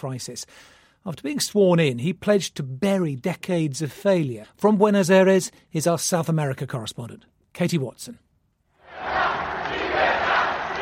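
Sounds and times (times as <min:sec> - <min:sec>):
speech: 0:00.0 - 0:08.2
crowd roaring and cheering at Javier Milei's presidential swearing-in in Buenos Aires: 0:08.8 - 0:10.7.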